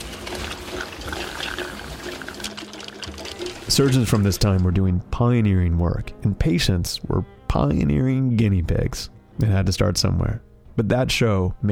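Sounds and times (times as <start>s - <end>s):
wet gurgling suction: 0.0s - 4.5s
speech: 3.7s - 11.6s.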